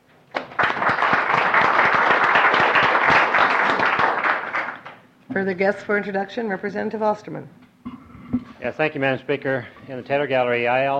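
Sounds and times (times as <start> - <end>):
round of applause: 0.4 - 5.0
speech: 5.4 - 7.6, 8.6 - 10.9.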